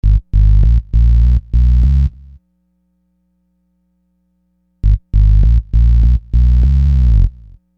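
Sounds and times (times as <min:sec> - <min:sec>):
hard synth bass: 0:00.0 - 0:02.2, 0:04.8 - 0:07.5.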